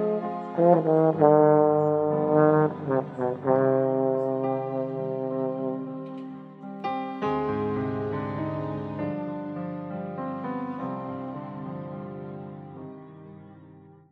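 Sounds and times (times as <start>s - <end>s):
instrumental composition with baritone: 0.0s - 9.8s.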